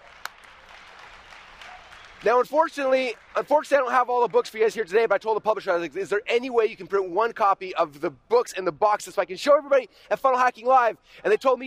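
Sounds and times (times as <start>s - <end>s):
sharp loud clap: 0.0s - 2.3s
audience applause: 0.0s - 4.5s
speech: 2.2s - 11.6s.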